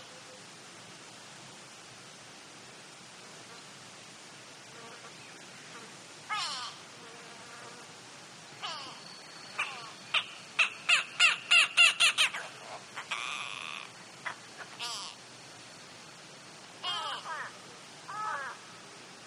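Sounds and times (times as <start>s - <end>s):
grey go-away-bird nasal calls: 6.3s - 6.8s, 8.6s - 15.2s, 16.8s - 18.6s.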